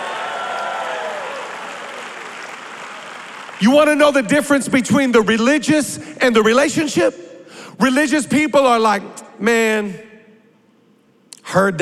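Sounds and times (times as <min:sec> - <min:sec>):
crowd clapping: 0:00.0 - 0:04.2
speech: 0:03.6 - 0:07.2, 0:07.8 - 0:10.1, 0:11.5 - 0:11.8.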